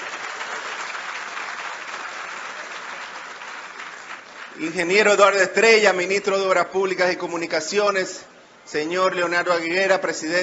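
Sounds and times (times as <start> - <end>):
audience applause: 0.0 - 4.6
speech: 4.6 - 10.4.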